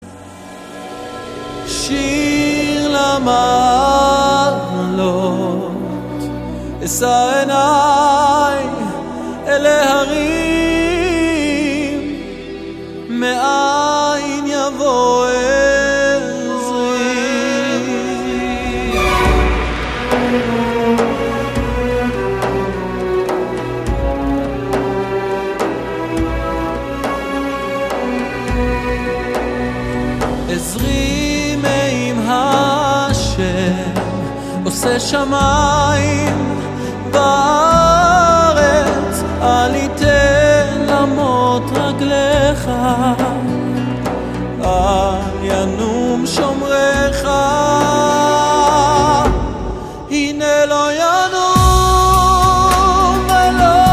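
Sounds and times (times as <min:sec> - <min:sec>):
people singing Jewish songs: 0:00.2 - 0:53.9.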